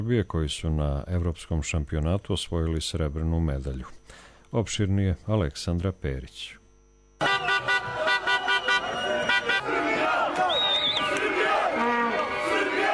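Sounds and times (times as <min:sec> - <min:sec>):
speech: 0:00.0 - 0:06.6, 0:07.2 - 0:07.6
whistles: 0:07.2 - 0:09.6, 0:10.4 - 0:11.2
car horns honking: 0:07.2 - 0:10.3, 0:11.1 - 0:12.4
crowd cheering and shouting: 0:07.2 - 0:12.9.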